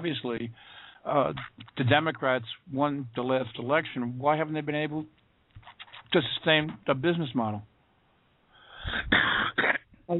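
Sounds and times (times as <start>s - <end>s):
speech: 0.0s - 5.2s, 5.8s - 7.7s, 8.8s - 10.1s
sneeze: 8.9s - 9.9s.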